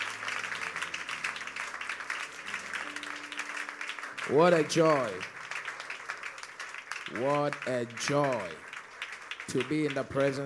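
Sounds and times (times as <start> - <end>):
crowd applauding: 0.0 - 10.4
speech: 4.3 - 5.3, 7.1 - 8.7, 9.5 - 10.4.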